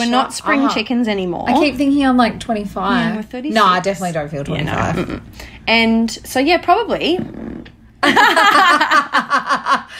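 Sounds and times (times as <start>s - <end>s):
speech: 0.0s - 9.9s
baby farting: 7.2s - 7.8s
laughter: 8.0s - 9.9s.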